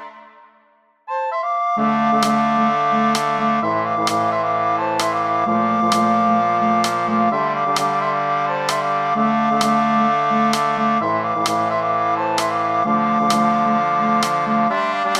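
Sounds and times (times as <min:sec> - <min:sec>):
soprano and alto voices: 0:01.3 - 0:15.1.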